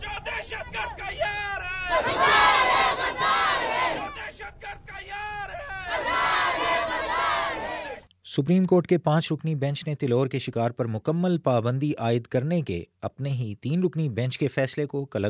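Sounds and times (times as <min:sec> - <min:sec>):
speech: 0:00.4 - 0:02.5, 0:08.4 - 0:15.2
children chanting slogans against terrorism at a rally in Quetta, Pakistan: 0:01.8 - 0:04.2, 0:05.6 - 0:08.0.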